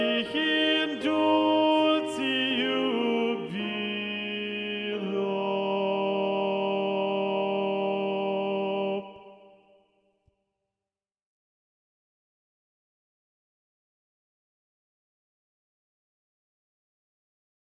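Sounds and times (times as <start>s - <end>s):
SATB choir singing with tenor predominant: 0.0s - 9.8s.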